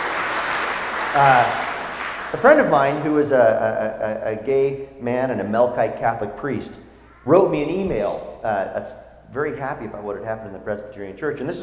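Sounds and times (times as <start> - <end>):
audience clapping in celebration: 0.0 - 3.0
speech: 1.2 - 1.7, 2.3 - 11.6.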